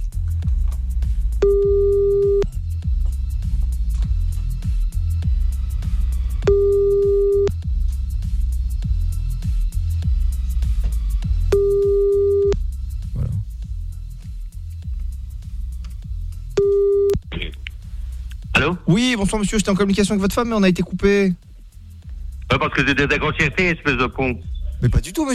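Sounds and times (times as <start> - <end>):
low throbbing hum: 0.0 - 23.3
telephone line tone while calling back: 1.4 - 2.5, 6.5 - 7.5, 11.6 - 12.6, 16.6 - 17.2
speech: 19.0 - 21.5, 22.6 - 25.3.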